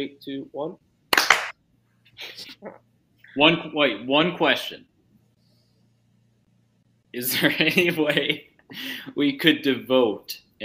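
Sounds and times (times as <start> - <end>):
speech: 0.0 - 0.9, 2.2 - 4.9, 7.1 - 10.6
group hand clap: 1.1 - 1.6.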